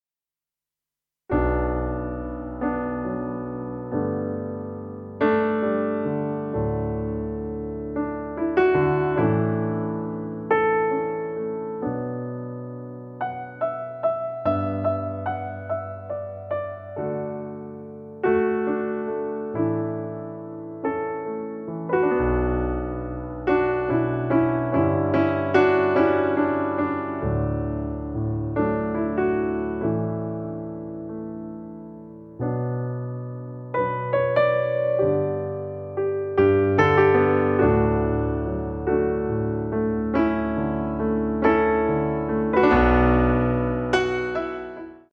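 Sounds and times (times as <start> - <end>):
piano music: 1.3 - 45.1.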